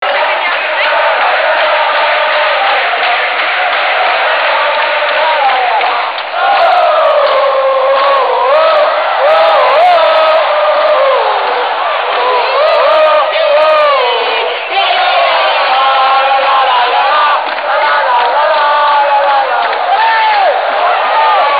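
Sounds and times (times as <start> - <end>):
chanting voices: 0.0 - 21.5.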